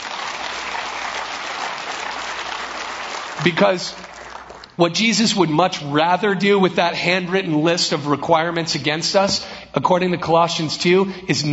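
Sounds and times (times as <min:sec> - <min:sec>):
crowd applauding: 0:00.0 - 0:04.8
speech: 0:03.4 - 0:04.1, 0:04.8 - 0:11.5.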